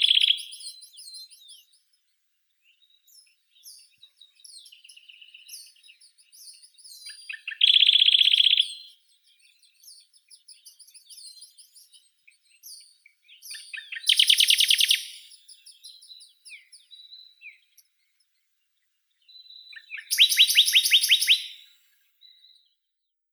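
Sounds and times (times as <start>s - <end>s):
Acrocephalus aedon thick-billed warbler: 2.6s - 18.4s, 19.2s - 22.4s.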